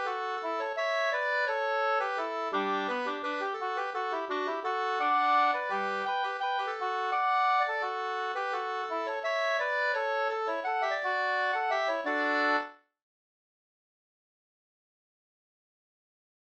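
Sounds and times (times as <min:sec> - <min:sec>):
waltz in two parts: 0:00.0 - 0:12.8.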